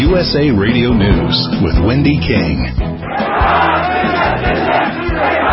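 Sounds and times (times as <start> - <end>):
speech: 0.1 - 2.9
crowd of mourners shouting in a funeral procession in Baghdad: 3.0 - 5.5.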